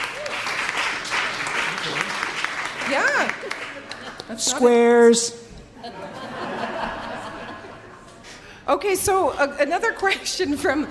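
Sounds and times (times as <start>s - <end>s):
crowd clapping: 0.0s - 4.7s
laughter: 3.6s - 4.6s, 5.7s - 8.3s
speech: 4.3s - 6.0s, 8.7s - 10.8s.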